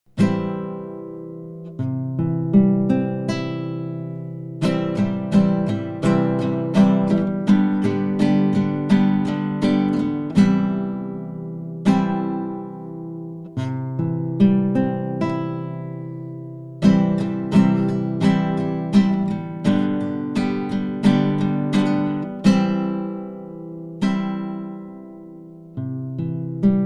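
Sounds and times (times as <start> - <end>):
guitar warm-up: 0.1 - 26.8.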